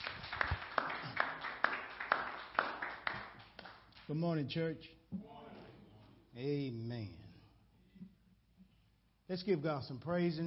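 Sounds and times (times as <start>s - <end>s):
audience hand clapping: 0.0s - 4.2s
speech: 4.1s - 5.3s, 6.4s - 7.2s, 9.3s - 10.4s.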